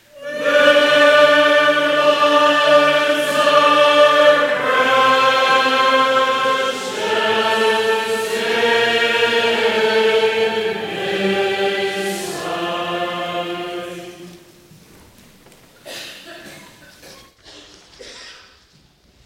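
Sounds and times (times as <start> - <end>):
person singing: 0.0 - 14.4.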